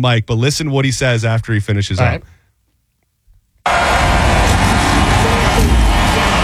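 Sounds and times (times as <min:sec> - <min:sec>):
speech: 0:00.0 - 0:02.4
race car engines starting: 0:03.7 - 0:06.4.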